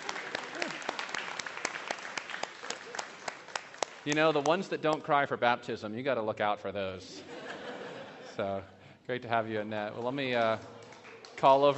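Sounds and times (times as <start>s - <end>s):
laughter: 0.0s - 1.1s, 7.1s - 8.8s
audience applauding after a baptism: 0.0s - 4.7s, 9.9s - 11.7s
speech: 4.0s - 7.4s, 8.4s - 10.8s, 11.4s - 11.7s.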